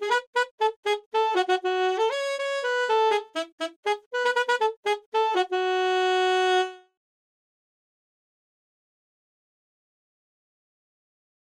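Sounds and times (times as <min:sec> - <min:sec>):
alto saxophone: 0:00.0 - 0:07.0.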